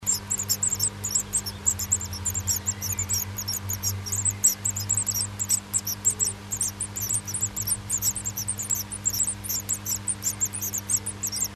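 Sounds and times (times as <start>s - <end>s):
high thin bird calls: 0.0s - 11.5s
low electrical hum: 0.0s - 11.5s.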